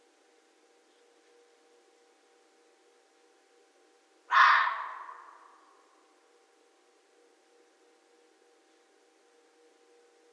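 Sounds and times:
red fox barking: 4.3s - 5.7s.

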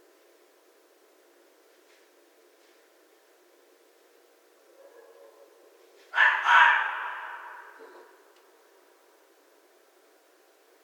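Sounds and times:
red fox screaming: 6.2s - 7.8s.

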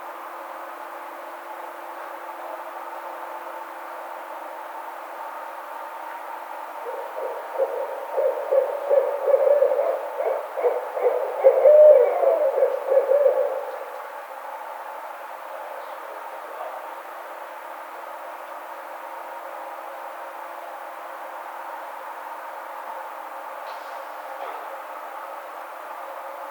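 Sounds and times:
Barred Owl calling: 6.8s - 14.0s.

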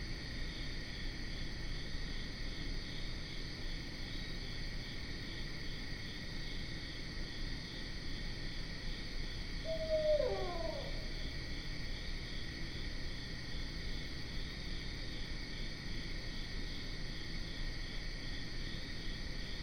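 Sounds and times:
continuous buzzing insects: 0.0s - 19.6s
barred owl hooting: 9.6s - 11.3s.

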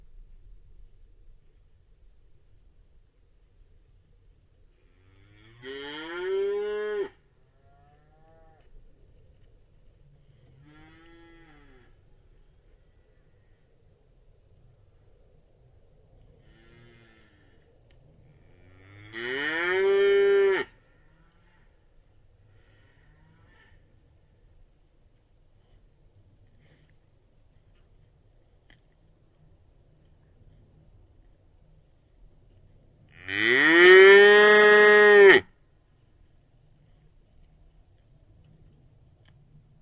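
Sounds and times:
cattle: 4.7s - 13.7s, 16.2s - 24.2s, 25.5s - 36.2s.

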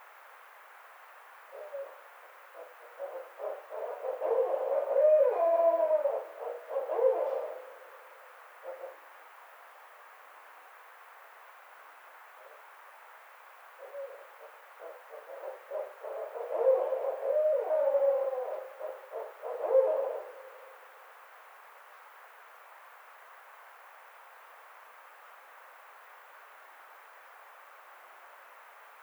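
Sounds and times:
barred owl hooting: 1.5s - 8.0s, 13.8s - 20.8s.

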